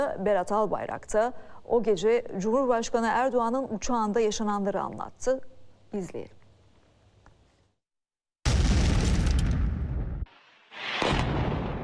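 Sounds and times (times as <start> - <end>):
speech: 0.0 - 6.4
bomb explosion in parliament building: 8.5 - 11.8.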